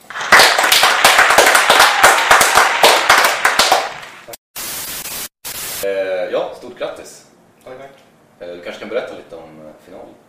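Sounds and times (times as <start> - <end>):
audience applause: 0.0 - 4.3
hiss-like noise: 4.6 - 6.0
speech: 6.4 - 10.2.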